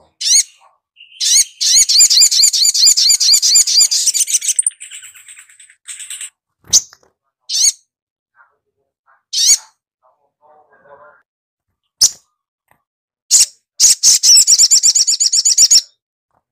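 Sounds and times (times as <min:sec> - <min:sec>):
little spiderhunter song of chips and rattling trill: 0:00.2 - 0:06.9, 0:13.3 - 0:15.9.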